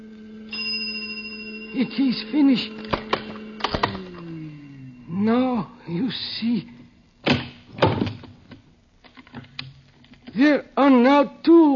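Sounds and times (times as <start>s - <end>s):
bell ringing: 0.0s - 6.1s
speech: 1.7s - 3.0s, 5.2s - 6.8s, 10.4s - 11.7s.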